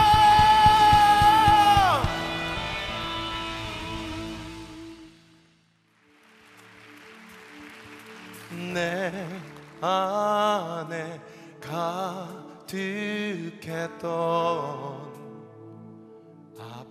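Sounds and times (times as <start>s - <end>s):
audience shouting and cheering: 0.0s - 4.1s
music: 0.0s - 16.8s.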